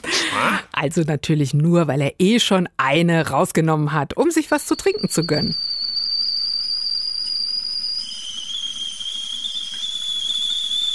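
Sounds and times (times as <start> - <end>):
speech: 0.4 - 5.7
kettle whistling as water boils: 4.2 - 10.9.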